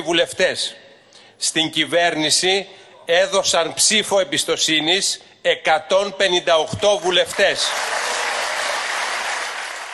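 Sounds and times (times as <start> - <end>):
speech: 0.0 - 0.8, 1.4 - 8.2
prolonged applause in parliament: 7.6 - 9.9.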